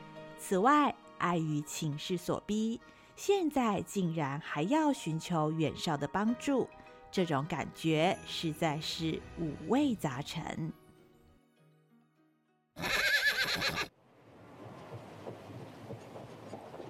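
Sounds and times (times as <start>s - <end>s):
speech: 0.4s - 10.8s
horse whinnying: 12.8s - 13.9s.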